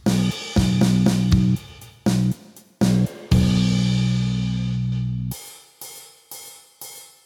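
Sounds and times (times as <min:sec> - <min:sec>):
backing music: 0:00.1 - 0:05.2.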